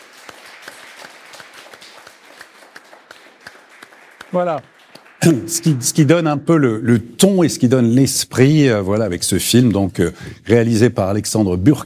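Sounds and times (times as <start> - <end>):
audience applause: 0.0 - 6.4
speech: 4.3 - 11.8.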